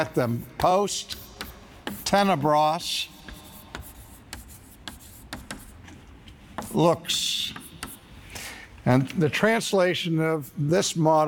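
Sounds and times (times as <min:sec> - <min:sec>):
speech: 0:00.0 - 0:01.3, 0:02.1 - 0:03.2, 0:06.8 - 0:07.6, 0:08.8 - 0:11.2
words being written down by hand: 0:00.1 - 0:05.9, 0:06.5 - 0:08.1.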